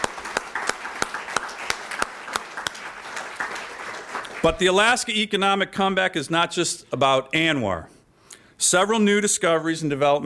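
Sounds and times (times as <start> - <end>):
crowd applause: 0.0 - 4.7
speech: 4.4 - 8.0, 8.6 - 10.2.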